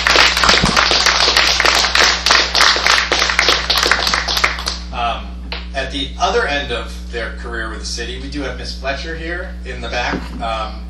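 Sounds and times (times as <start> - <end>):
room of people applauding: 0.0 - 4.8
low steady hum: 0.0 - 10.8
speech: 5.9 - 10.8.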